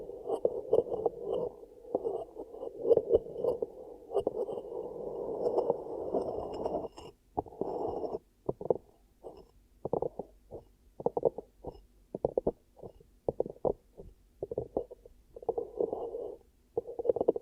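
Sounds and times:
ear cupping: 0.0s - 17.4s.

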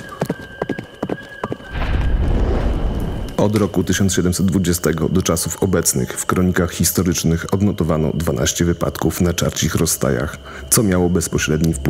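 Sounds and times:
horses rearing and fleeing in panic on a road: 0.0s - 1.8s
loud rumbling rush of noise: 1.8s - 4.3s
speech: 3.4s - 11.8s.

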